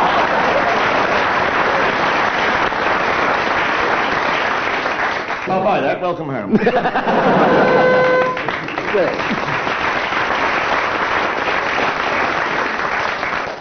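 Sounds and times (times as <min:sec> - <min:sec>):
studio audience laughing: 0:00.0 - 0:02.0, 0:06.6 - 0:09.7
studio audience cheering: 0:00.0 - 0:02.9, 0:07.2 - 0:09.2
studio audience applause: 0:00.0 - 0:05.7, 0:07.1 - 0:13.5
speech: 0:05.5 - 0:07.9, 0:08.9 - 0:09.7
brief whistle: 0:07.4 - 0:08.5.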